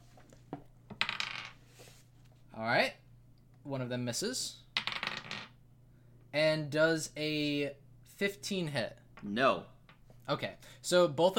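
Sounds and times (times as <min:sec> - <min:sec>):
dice rolling across a table: 0:00.5 - 0:01.6, 0:04.8 - 0:05.6
speech: 0:02.6 - 0:03.0, 0:03.6 - 0:04.6, 0:06.3 - 0:09.7, 0:10.3 - 0:11.3.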